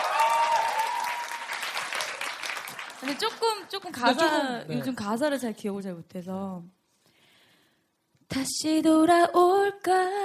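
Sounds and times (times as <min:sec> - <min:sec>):
audience applause: 0:00.0 - 0:04.2
speech: 0:03.0 - 0:06.8, 0:08.3 - 0:10.2.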